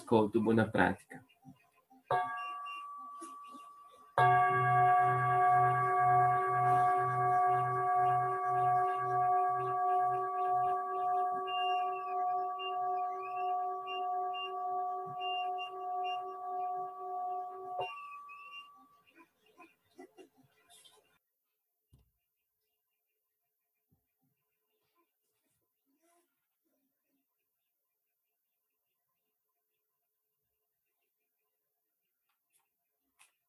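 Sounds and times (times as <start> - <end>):
speech: 0.1 - 2.4
meditation bell ringing: 2.1 - 19.0.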